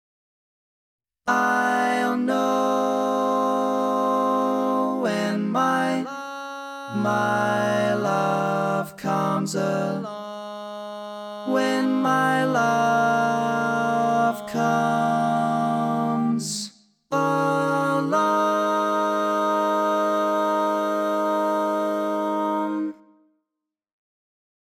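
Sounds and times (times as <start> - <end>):
baritone barbershop tags: 1.3 - 23.0.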